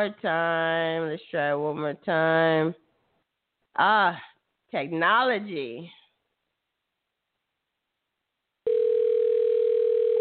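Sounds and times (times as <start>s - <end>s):
speech: 0.0s - 2.8s, 3.8s - 6.0s
telephone ringing tone on a call: 8.6s - 10.1s.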